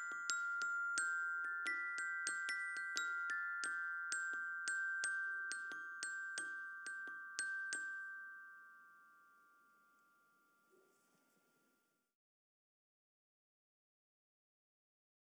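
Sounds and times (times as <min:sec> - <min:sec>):
music: 0:00.0 - 0:12.2.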